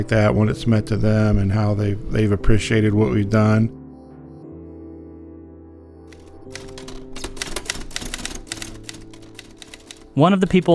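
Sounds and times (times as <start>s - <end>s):
speech: 0.0s - 3.8s, 10.2s - 10.7s
typewriter keys clacking: 6.1s - 10.7s.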